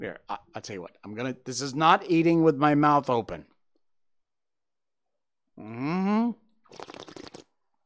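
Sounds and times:
speech: 0.0 - 3.5, 5.6 - 7.1
air slurped through the mouth while tasting wine: 6.6 - 7.7.

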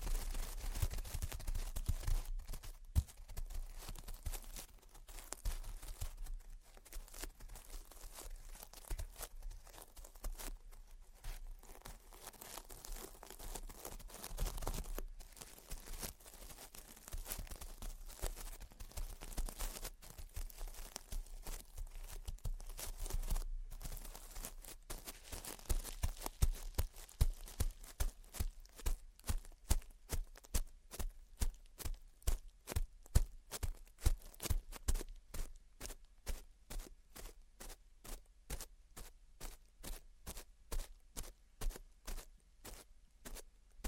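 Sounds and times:
gentle scratching: 0.0 - 43.8
steady rapid crisp light tapping: 0.7 - 30.6.

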